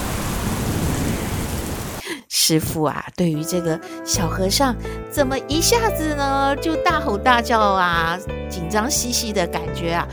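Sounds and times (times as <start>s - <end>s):
sudden heavy downpour of rain: 0.0s - 2.0s
speech: 2.5s - 10.1s.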